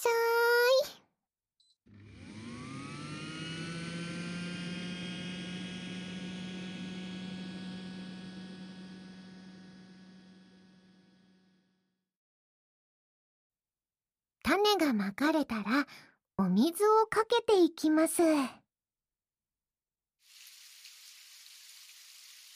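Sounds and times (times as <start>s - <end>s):
seed-sowing robot electric hum: 2.0s - 11.8s
speech: 14.5s - 18.6s.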